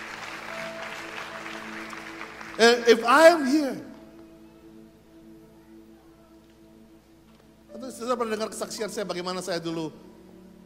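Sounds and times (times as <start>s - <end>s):
audience applause: 0.0s - 3.5s
speech: 2.6s - 3.9s, 8.0s - 10.1s.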